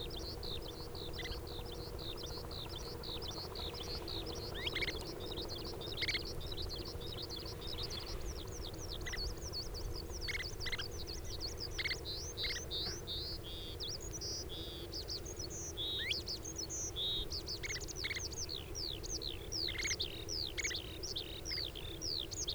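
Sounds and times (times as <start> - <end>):
Oriental skylark singing: 0.0 - 22.5.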